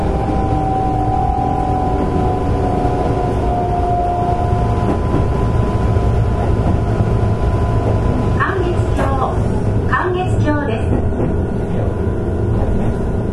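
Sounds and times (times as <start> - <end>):
thin whining tone: 0.0 - 6.2
Keihan Railway 13000 series train running: 0.0 - 13.3.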